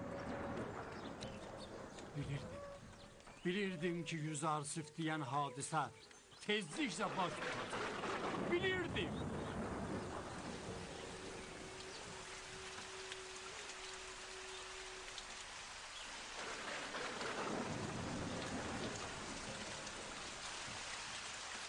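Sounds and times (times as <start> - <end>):
thunder rumbling: 0.0 - 3.5, 6.7 - 15.2, 16.2 - 21.4
rain: 0.0 - 21.6
speech: 2.2 - 2.6, 3.4 - 7.8, 8.5 - 9.4.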